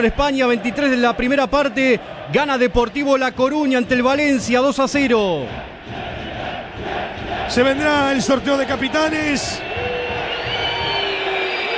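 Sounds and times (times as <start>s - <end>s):
speech: 0.0s - 6.1s, 7.5s - 9.8s
dense stadium crowd roaring: 0.0s - 11.7s.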